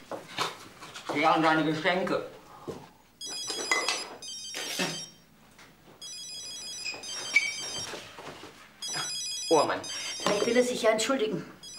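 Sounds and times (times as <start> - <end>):
speech: 1.2 - 2.8, 9.5 - 11.6
old-fashioned telephone bell ringing: 3.2 - 5.2, 6.0 - 7.9, 8.8 - 10.7.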